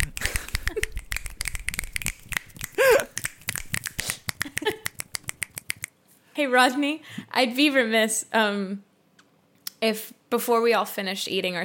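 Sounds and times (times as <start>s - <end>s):
group of people finger snapping: 0.0s - 5.9s
voice sounds: 0.0s - 5.9s
speech: 6.4s - 8.9s, 9.8s - 11.6s.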